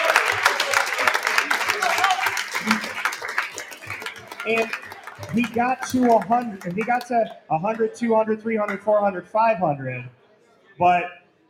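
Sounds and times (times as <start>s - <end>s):
audience applause: 0.0s - 7.9s
speech: 4.5s - 10.2s, 10.8s - 11.2s.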